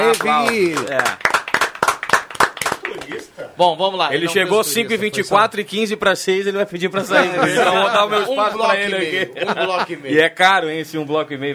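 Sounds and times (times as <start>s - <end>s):
audience applause: 0.0s - 3.3s
speech: 0.1s - 1.2s, 3.4s - 11.5s
laughter: 6.9s - 10.2s.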